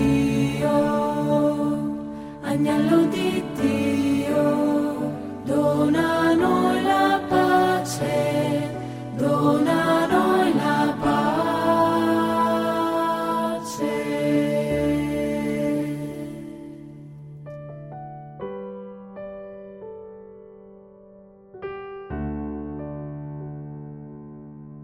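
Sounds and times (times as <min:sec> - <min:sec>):
contralto voices singing: 0:00.0 - 0:17.0.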